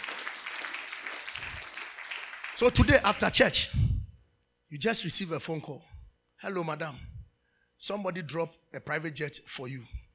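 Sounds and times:
audience clapping in church: 0.0s - 3.2s
speech: 2.6s - 3.8s, 4.7s - 7.1s, 7.8s - 10.0s.

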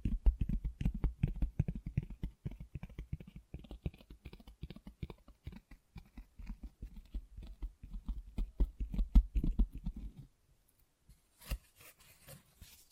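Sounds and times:
rapid dense tapping and scratching: 0.0s - 10.3s.

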